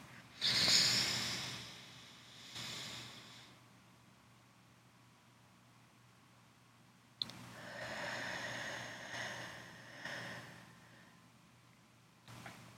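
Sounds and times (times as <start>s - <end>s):
slow deep breathing in and out: 0.0s - 3.7s, 7.4s - 11.3s.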